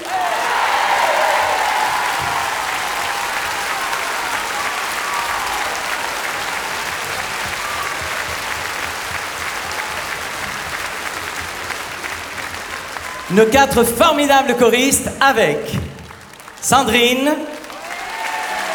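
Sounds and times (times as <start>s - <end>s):
audience applause: 0.0s - 18.7s
speech: 13.3s - 15.8s, 16.7s - 17.6s.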